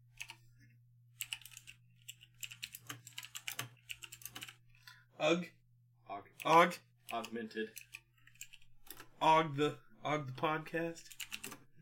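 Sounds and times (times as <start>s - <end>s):
fingers typing on a computer keyboard: 0.1s - 0.4s, 1.2s - 4.6s, 6.4s - 9.1s, 11.1s - 11.7s
speech: 5.2s - 5.6s, 6.2s - 7.9s, 9.2s - 11.2s.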